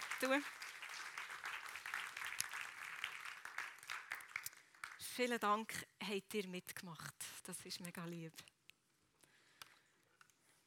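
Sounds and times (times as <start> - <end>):
audience applause: 0.0 - 5.1
speech: 0.2 - 0.6, 5.2 - 8.5.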